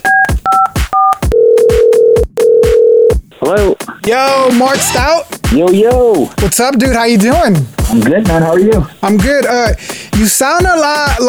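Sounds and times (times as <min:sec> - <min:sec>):
dual-tone telephone keypad beeps: 0:00.0 - 0:03.2
telephone ringback tone: 0:00.0 - 0:03.2
speech: 0:03.5 - 0:11.2.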